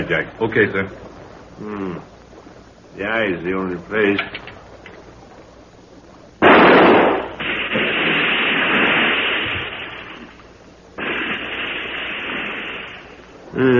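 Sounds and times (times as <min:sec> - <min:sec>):
speech: 0:00.0 - 0:02.2, 0:03.0 - 0:04.5, 0:13.6 - 0:13.7
gunshots fired at an animal in a stream at night: 0:06.4 - 0:10.3, 0:11.0 - 0:13.2.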